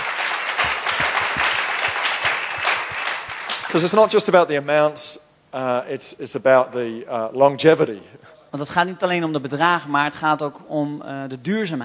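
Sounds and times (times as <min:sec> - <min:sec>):
audience applause: 0:00.0 - 0:04.2
speech: 0:03.7 - 0:11.8.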